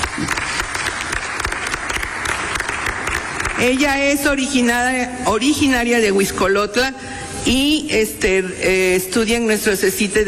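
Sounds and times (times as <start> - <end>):
audience applause: 0.0 - 3.9
speech: 3.6 - 10.2.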